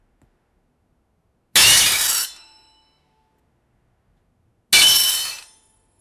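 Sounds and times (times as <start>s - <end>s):
mirror smashing: 1.6s - 2.5s, 4.8s - 5.5s.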